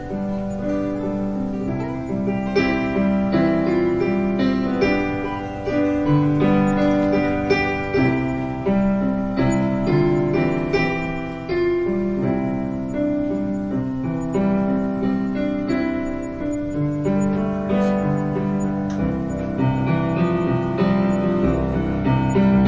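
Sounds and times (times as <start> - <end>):
guitar: 0.0 - 22.6
piano: 0.0 - 22.6.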